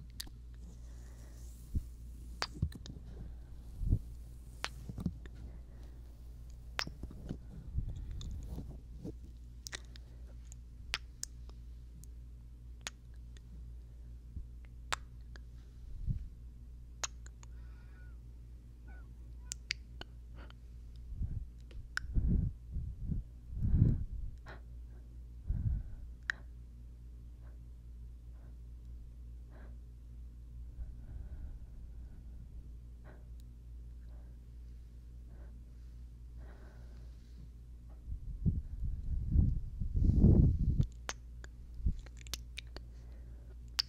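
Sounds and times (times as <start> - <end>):
low hum: 0.0 - 43.8
soft breathing: 0.3 - 10.6, 17.4 - 18.2, 22.1 - 26.6, 30.7 - 40.9, 42.6 - 43.6
wet kissing and mouth sounds: 2.4 - 2.9, 17.0 - 17.6, 40.8 - 42.9.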